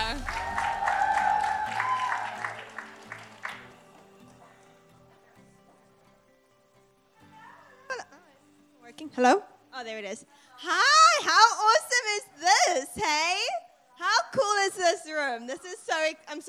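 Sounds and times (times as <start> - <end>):
brief sharp sound: 0.0 - 2.0
audience clapping and cheering: 0.0 - 4.8
shrill whoops: 0.1 - 3.6
speech: 9.1 - 16.4.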